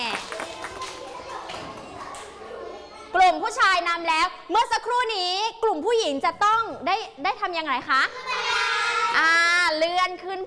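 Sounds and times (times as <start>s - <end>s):
children clapping hands: 0.0s - 2.4s
speech: 3.3s - 8.4s, 9.1s - 10.4s.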